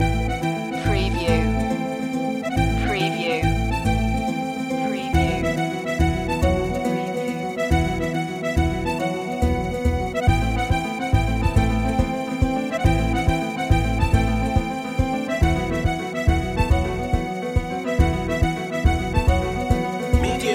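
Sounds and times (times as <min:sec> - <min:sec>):
Balkan music loop: 0:00.0 - 0:20.5.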